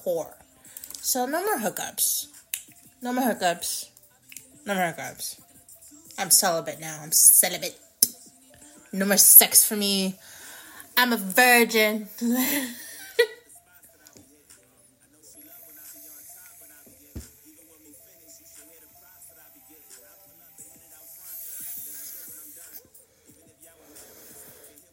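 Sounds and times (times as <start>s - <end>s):
speech: 0.0s - 0.4s, 1.0s - 2.4s, 3.0s - 3.9s, 4.6s - 5.4s, 6.2s - 7.8s, 8.9s - 10.4s, 11.0s - 13.3s
hard draw on a vape pen loaded with weed: 15.4s - 17.1s, 20.9s - 24.9s.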